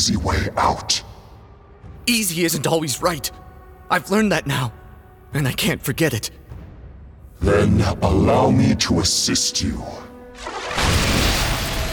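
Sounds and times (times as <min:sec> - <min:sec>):
speech: 0:00.0 - 0:01.1, 0:02.1 - 0:06.4, 0:07.4 - 0:10.8
red lightning bolts blast effect: 0:10.4 - 0:11.9.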